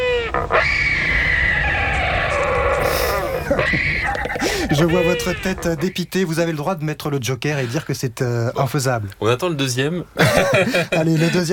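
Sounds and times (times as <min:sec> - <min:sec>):
wandering albatross call: 0:00.0 - 0:06.0
laughter: 0:02.9 - 0:05.8, 0:10.2 - 0:11.5
speech: 0:04.7 - 0:11.5.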